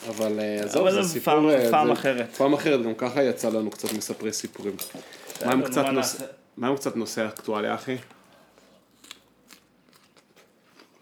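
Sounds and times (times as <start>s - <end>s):
speech: 0.0s - 8.2s
person chewing crunchy food close to the microphone: 8.2s - 11.0s.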